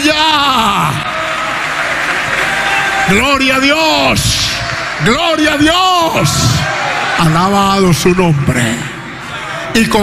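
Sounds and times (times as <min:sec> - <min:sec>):
congregation clapping during a church service: 0:00.5 - 0:07.6
speech: 0:03.1 - 0:08.9, 0:09.8 - 0:10.0.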